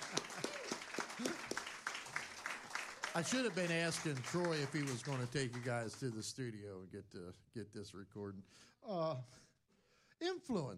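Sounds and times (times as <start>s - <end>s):
audience applause: 0.0s - 6.2s
speech: 3.2s - 9.5s, 10.2s - 10.7s.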